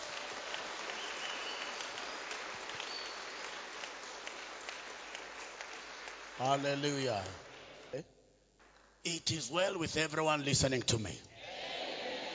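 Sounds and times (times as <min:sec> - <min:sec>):
crowd clapping: 0:00.0 - 0:08.0
speech: 0:06.4 - 0:08.2, 0:09.0 - 0:11.9.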